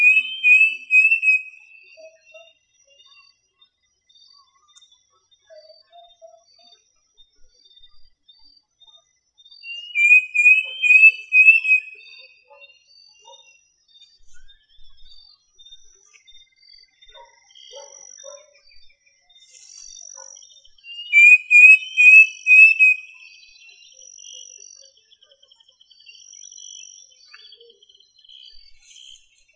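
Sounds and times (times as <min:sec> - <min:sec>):
bird call with pulsing high whistled notes: 0:00.0 - 0:01.6, 0:09.8 - 0:12.0, 0:21.0 - 0:23.2.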